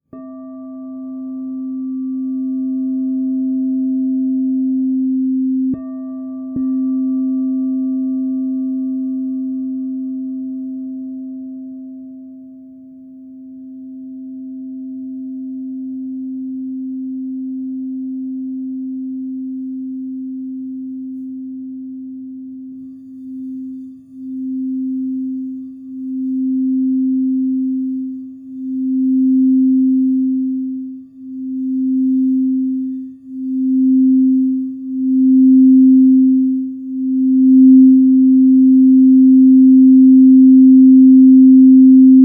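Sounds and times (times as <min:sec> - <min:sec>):
crystal singing bowls ringing: 0:00.0 - 0:42.1.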